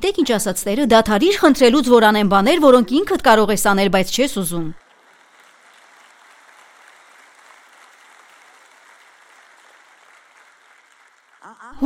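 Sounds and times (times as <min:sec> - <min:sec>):
speech: 0:00.0 - 0:04.8
congregation applauding during a sermon: 0:04.8 - 0:11.8.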